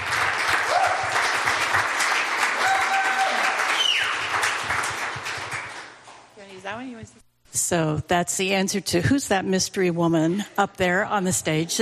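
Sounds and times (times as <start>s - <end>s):
applause: 0.0s - 6.1s
speech: 7.7s - 11.7s.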